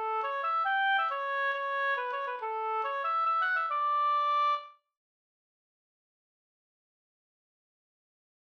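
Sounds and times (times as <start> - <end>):
hambo polska folk dance tune: 0.0 - 4.7.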